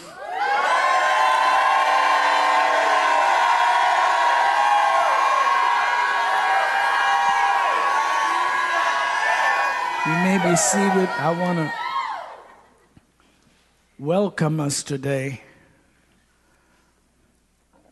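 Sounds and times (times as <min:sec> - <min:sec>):
congregation shouting praise to the Lord at a religious session: 0:00.0 - 0:12.8
speech: 0:10.4 - 0:11.8, 0:14.0 - 0:15.5.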